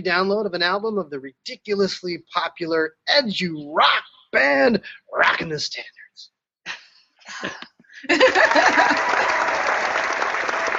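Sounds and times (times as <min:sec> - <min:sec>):
speech: 0:00.0 - 0:09.4
laughter: 0:07.3 - 0:09.9
studio audience applause on a quiz game show: 0:08.1 - 0:10.7.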